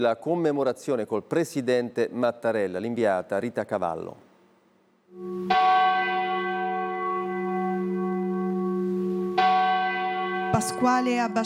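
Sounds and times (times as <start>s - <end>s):
speech: 0.0s - 4.3s, 5.1s - 6.2s, 10.6s - 11.4s
church bells tolling: 5.5s - 11.4s.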